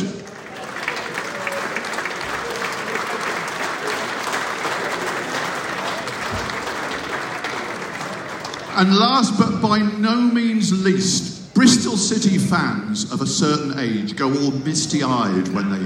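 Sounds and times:
stadium crowd applause welcoming a former player: 0:00.0 - 0:09.4
speech: 0:08.8 - 0:15.8.

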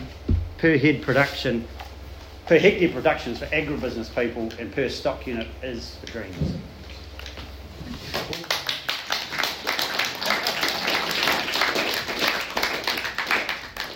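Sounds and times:
speech: 0:00.6 - 0:01.8, 0:02.5 - 0:06.8
audience clapping: 0:08.1 - 0:13.9.

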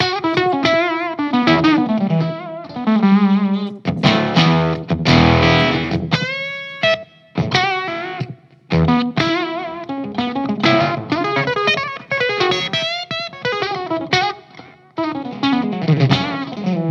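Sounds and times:
distorted electric guitar played through a fuzz pedal: 0:00.0 - 0:16.9.

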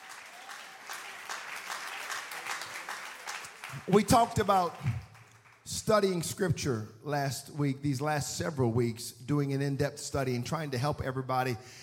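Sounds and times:
audience clapping hands: 0:00.0 - 0:06.0
speech: 0:03.7 - 0:05.0, 0:05.8 - 0:11.8.

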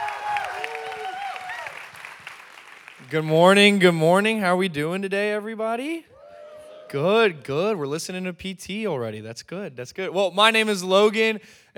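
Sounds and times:
voices cheering: 0:00.0 - 0:01.9, 0:06.1 - 0:07.4
audience applause: 0:00.0 - 0:03.1
speech: 0:03.1 - 0:06.1, 0:06.9 - 0:11.7.

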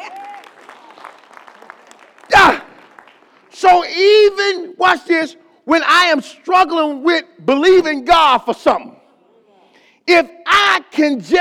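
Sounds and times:
audience hand clapping: 0:00.0 - 0:03.6
speech: 0:03.6 - 0:09.0, 0:10.1 - 0:11.3.

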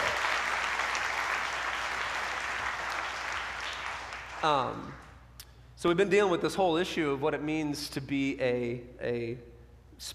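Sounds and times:
congregation clapping for first-time guests: 0:00.0 - 0:05.1
speech: 0:04.4 - 0:05.0, 0:05.8 - 0:10.1.

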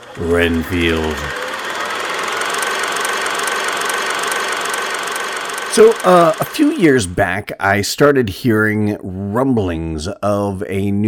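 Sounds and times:
kinetoscope film projector running: 0:00.0 - 0:07.2
speech: 0:00.2 - 0:01.4, 0:05.8 - 0:11.0.

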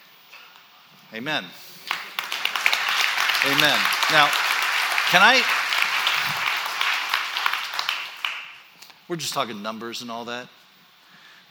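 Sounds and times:
speech: 0:01.1 - 0:01.6, 0:03.4 - 0:04.5, 0:05.1 - 0:05.6, 0:09.1 - 0:10.6
audience clapping: 0:01.8 - 0:08.7.

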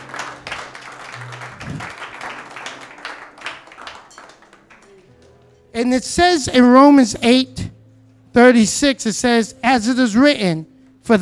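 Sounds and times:
audience clapping hands: 0:00.0 - 0:05.5
speech: 0:05.8 - 0:07.7, 0:08.4 - 0:11.2.

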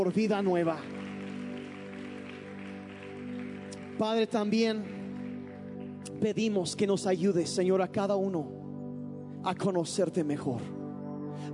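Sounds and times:
speech: 0:00.0 - 0:01.0, 0:04.0 - 0:05.0, 0:06.1 - 0:08.6, 0:09.4 - 0:10.8, 0:11.4 - 0:11.5
audience applause: 0:00.0 - 0:06.2.

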